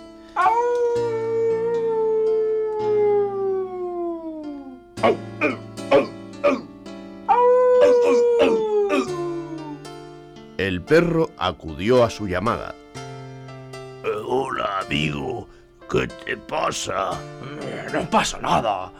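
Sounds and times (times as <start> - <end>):
wolf howling at nightfall: 0.4 - 6.7, 7.3 - 9.8
speech: 5.0 - 6.1, 10.9 - 12.8, 14.9 - 18.9.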